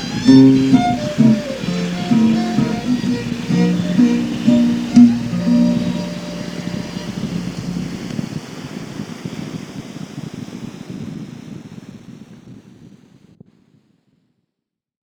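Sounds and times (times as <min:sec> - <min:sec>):
waltz music field recording: 0:00.0 - 0:08.1.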